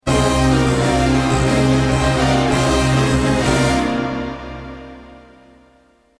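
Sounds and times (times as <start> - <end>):
orchestra: 0.0 - 6.0.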